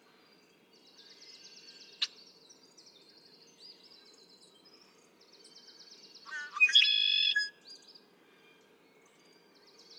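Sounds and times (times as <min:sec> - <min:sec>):
red-winged blackbird singing: 0:05.6 - 0:07.5.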